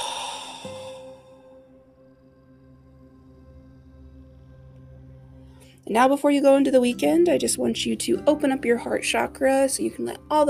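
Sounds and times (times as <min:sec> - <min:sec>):
deep breathy exhale during a guided breathing and meditation exercise: 0:00.0 - 0:01.4
speech: 0:05.9 - 0:10.4.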